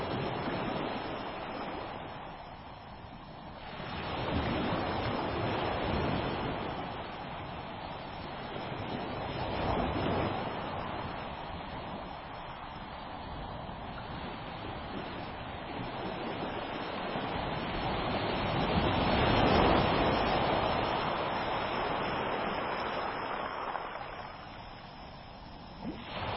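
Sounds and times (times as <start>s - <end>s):
ocean waves: 0.0s - 26.3s.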